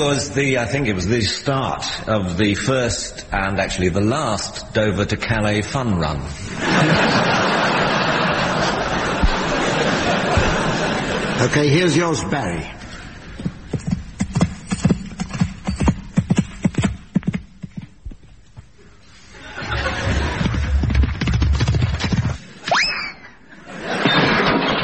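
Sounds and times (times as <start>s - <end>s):
speech: 0.0s - 7.6s, 11.4s - 12.8s
laughter: 6.4s - 12.0s, 19.3s - 20.9s, 23.2s - 24.7s
horse hooves thudding: 12.9s - 18.8s, 20.0s - 22.4s.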